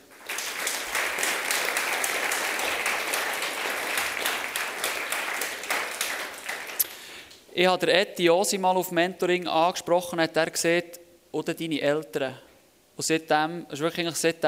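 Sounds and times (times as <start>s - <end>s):
audience applause: 0.0s - 6.8s
speech: 7.6s - 14.4s.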